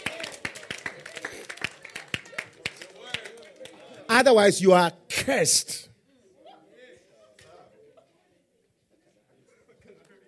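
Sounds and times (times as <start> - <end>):
audience clapping in rhythm: 0.0 - 4.8
speech: 4.2 - 5.9.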